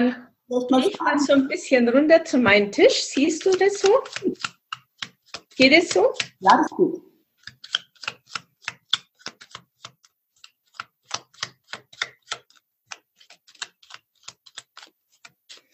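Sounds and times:
speech: 0.0s - 4.6s, 5.6s - 7.1s
playing cards shuffled by hand at a table before a card reading: 2.8s - 15.7s.

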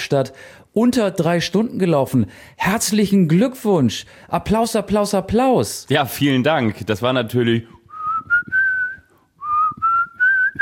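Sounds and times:
speech: 0.0s - 7.8s
whistled melody: 7.9s - 10.6s.

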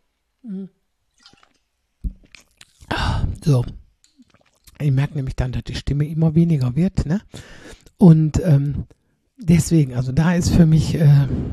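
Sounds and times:
speech: 0.4s - 0.8s, 3.5s - 3.8s, 4.8s - 11.5s
person sipping a drink and gulping: 1.1s - 4.8s.

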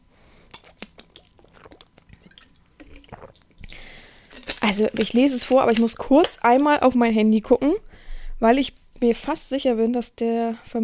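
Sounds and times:
person sipping a drink and swallowing: 0.5s - 5.1s
speech: 4.6s - 7.8s, 8.4s - 10.8s.

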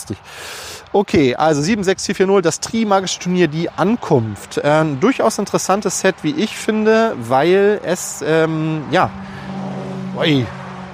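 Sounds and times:
road traffic low rumble: 0.0s - 10.9s
speech: 0.1s - 9.5s, 10.2s - 10.6s
vehicle passing by: 3.0s - 10.9s.

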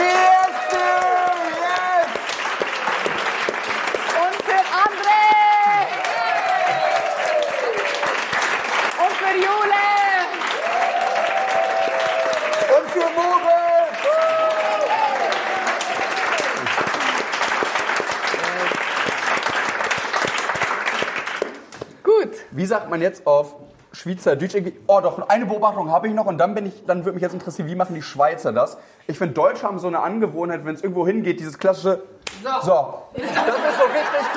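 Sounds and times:
audience applause: 0.0s - 21.8s
speech: 22.7s - 34.3s
laughter: 33.2s - 34.3s.

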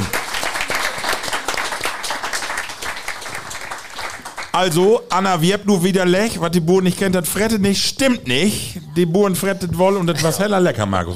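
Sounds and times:
audience applause: 0.0s - 4.8s
speech: 4.6s - 11.1s.

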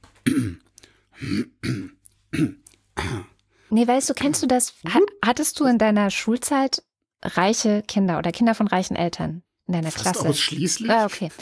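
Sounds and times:
deliberate throat clearing: 0.2s - 3.4s
speech: 0.3s - 1.5s, 3.8s - 11.3s.

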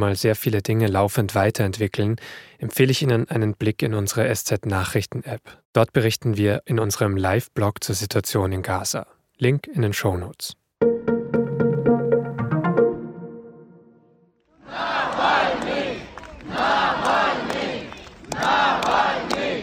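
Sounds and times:
speech: 0.0s - 10.9s
short tonal musical jingle: 10.8s - 14.2s
thousands of people chanting: 14.6s - 19.6s.

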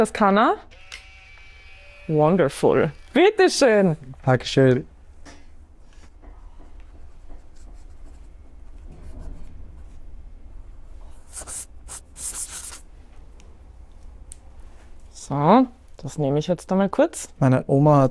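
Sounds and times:
speech: 0.0s - 0.9s, 2.1s - 4.9s, 15.3s - 18.0s
low room hum: 0.0s - 18.0s
pen writing an entry in a guestbook: 11.3s - 12.8s.

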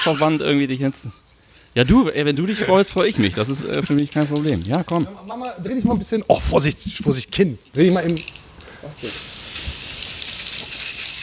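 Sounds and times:
speech: 0.0s - 1.2s, 1.8s - 9.5s
hairspray being sprayed: 8.2s - 11.2s.

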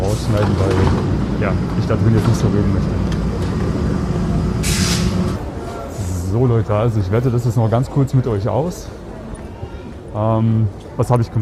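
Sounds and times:
subway train pulling into station: 0.0s - 6.1s
speech: 0.3s - 3.2s, 6.3s - 9.1s, 10.1s - 11.3s.

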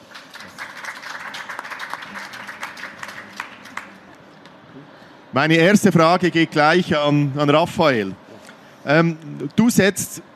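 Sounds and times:
applause: 0.0s - 4.2s
speech: 5.3s - 8.2s, 8.8s - 10.3s.

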